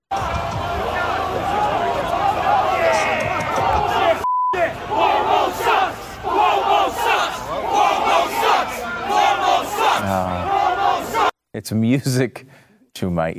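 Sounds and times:
protest crowd chanting outside a building: 0.1s - 11.4s
speech: 11.6s - 13.3s.

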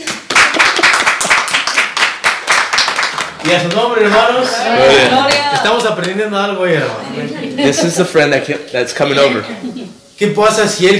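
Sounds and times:
audience clapping hands: 0.0s - 6.3s
speech: 3.4s - 10.9s
laughter: 6.8s - 8.4s, 9.2s - 10.0s.

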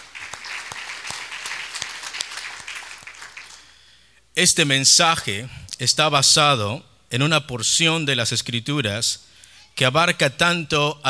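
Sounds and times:
audience clapping: 0.0s - 3.9s
speech: 4.4s - 11.0s.

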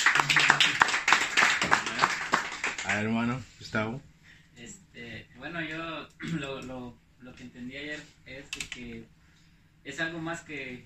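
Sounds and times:
church congregation clapping hands in praise: 0.0s - 3.2s
speech: 2.9s - 4.8s, 5.4s - 9.2s, 9.8s - 10.8s.

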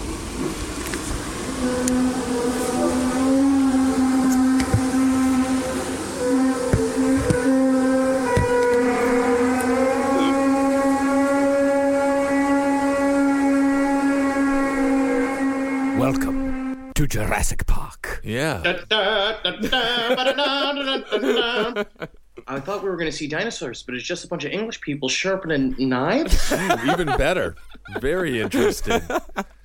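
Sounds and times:
low droning hum, the British hum: 0.0s - 17.0s, 26.3s - 29.6s
speech: 17.2s - 29.5s
laughter: 18.6s - 22.7s, 26.2s - 29.6s.

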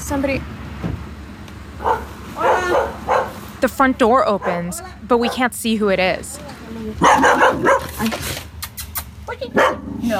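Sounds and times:
speech: 0.1s - 0.6s, 3.6s - 8.4s, 9.3s - 10.1s
dog barking: 1.8s - 3.4s, 4.4s - 5.4s, 7.0s - 8.0s, 9.5s - 10.0s.

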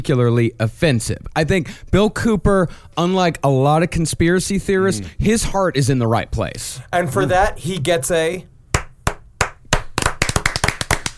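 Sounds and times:
speech: 0.0s - 8.5s
applause: 8.8s - 11.1s.

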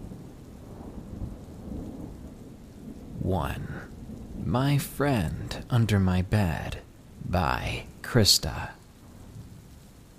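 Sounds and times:
rolling thunder: 0.0s - 4.6s, 9.0s - 10.1s
steady rain: 0.0s - 10.1s
speech: 3.3s - 8.8s.

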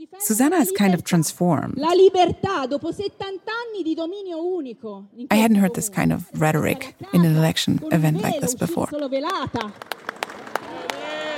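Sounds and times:
speech: 0.1s - 10.0s
crowd applause at election rally: 9.2s - 11.3s.

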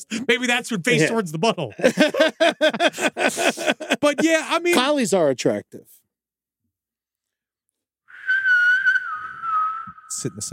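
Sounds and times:
speech: 0.0s - 6.0s, 10.2s - 10.5s
laughter: 0.9s - 4.7s
person whistling a TV theme tune: 8.1s - 10.3s.

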